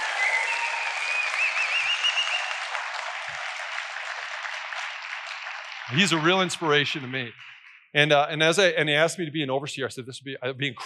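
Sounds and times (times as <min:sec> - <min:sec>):
audience applause for a speaker being honored: 0:00.0 - 0:07.7
speech: 0:05.9 - 0:10.8.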